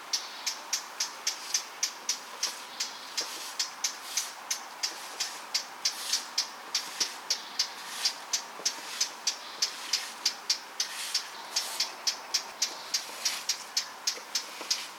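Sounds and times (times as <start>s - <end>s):
Eurasian blackcap tack calls: 0.2s - 14.9s.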